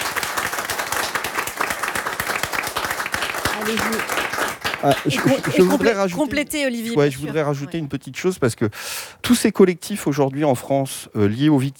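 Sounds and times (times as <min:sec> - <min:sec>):
audience applause: 0:00.0 - 0:06.4
speech: 0:03.6 - 0:11.7.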